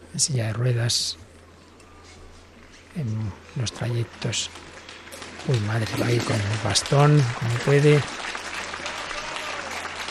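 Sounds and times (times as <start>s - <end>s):
speech: 0.1s - 1.3s, 3.0s - 4.8s, 5.4s - 8.3s
crowd of faithful applauding: 3.8s - 10.1s.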